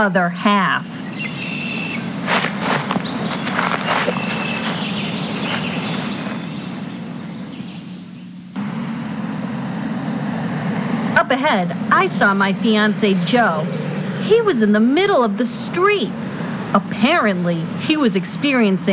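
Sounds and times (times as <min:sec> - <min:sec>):
speech: 0:00.0 - 0:01.0, 0:11.3 - 0:18.9
constant buzzing background: 0:00.0 - 0:18.9
footsteps walking downtown: 0:02.0 - 0:06.9.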